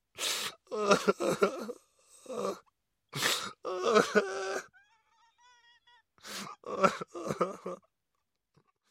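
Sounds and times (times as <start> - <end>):
man crying: 0.7 - 2.5, 3.6 - 4.8, 5.4 - 7.9.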